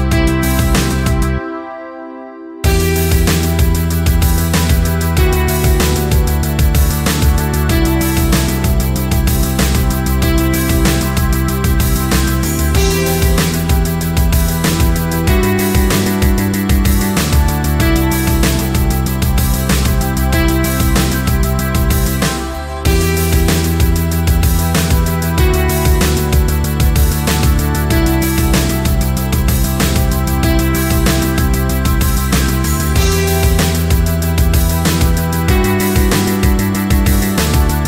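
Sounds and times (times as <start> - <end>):
karaoke backing track: 0.0 - 37.8.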